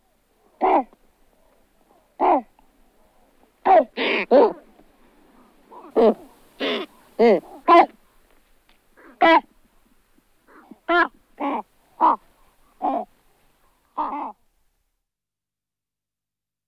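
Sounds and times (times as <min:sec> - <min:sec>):
great white pelican calls: 0:03.6 - 0:04.7, 0:05.7 - 0:08.0, 0:10.5 - 0:14.4.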